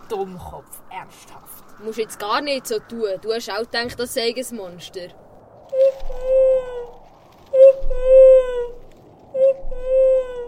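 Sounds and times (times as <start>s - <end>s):
speech: 0.1s - 6.4s
snowy owl calls: 5.7s - 10.4s.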